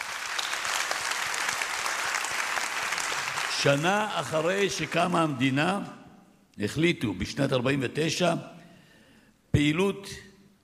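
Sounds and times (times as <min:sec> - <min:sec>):
applause: 0:00.0 - 0:05.6
speech: 0:03.6 - 0:06.0, 0:06.6 - 0:08.6, 0:09.6 - 0:10.6.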